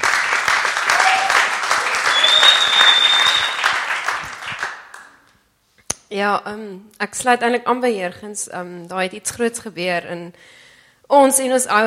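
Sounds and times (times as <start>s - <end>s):
church congregation applauding its pastors and leaders: 0.0s - 5.2s
high piercing whistle: 2.0s - 3.8s
speech: 6.1s - 11.8s.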